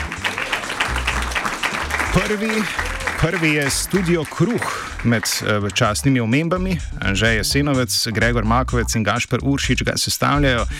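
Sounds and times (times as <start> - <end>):
moderate applause at a poster design awards announcement: 0.0 - 6.2
speech: 2.1 - 10.7.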